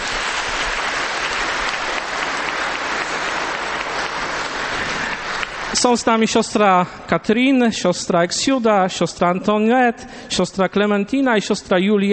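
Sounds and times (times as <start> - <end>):
audience applause: 0.0 - 6.2
speech: 5.8 - 12.1.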